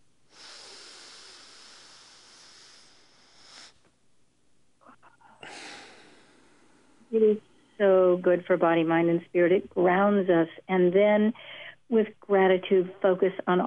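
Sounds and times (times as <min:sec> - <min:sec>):
slow deep breath: 0:00.3 - 0:03.9, 0:04.8 - 0:07.8, 0:11.4 - 0:11.8
speech: 0:07.1 - 0:13.6.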